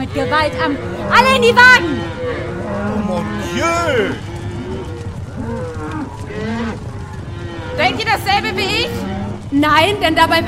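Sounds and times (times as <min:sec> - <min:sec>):
herd of Longhorn cattle mooing: 0:00.0 - 0:10.4
speech: 0:00.1 - 0:04.3, 0:07.8 - 0:10.4.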